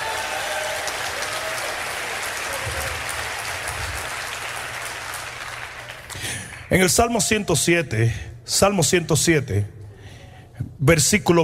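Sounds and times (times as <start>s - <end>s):
audience applause: 0.0s - 6.7s
speech: 6.7s - 9.8s, 10.8s - 11.4s.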